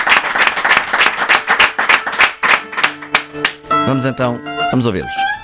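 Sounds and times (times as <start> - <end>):
audience applause: 0.0 - 3.6
speech: 3.9 - 5.3.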